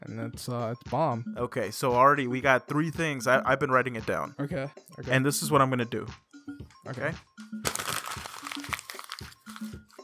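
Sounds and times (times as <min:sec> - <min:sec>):
speech: 0:00.1 - 0:06.3, 0:06.9 - 0:07.6
paper crumpled into a ball by hand: 0:07.6 - 0:10.0.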